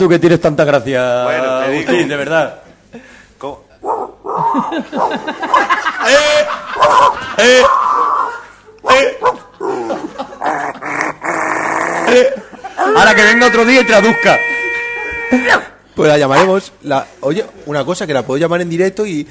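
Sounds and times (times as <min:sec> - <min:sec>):
speech: 0:00.0 - 0:03.6, 0:04.5 - 0:08.0, 0:08.8 - 0:10.3, 0:12.1 - 0:14.5, 0:15.3 - 0:19.2
people laughing: 0:04.4 - 0:07.8, 0:09.5 - 0:11.2, 0:12.0 - 0:15.4
woman imitating dog growling and yapping: 0:09.7 - 0:13.1.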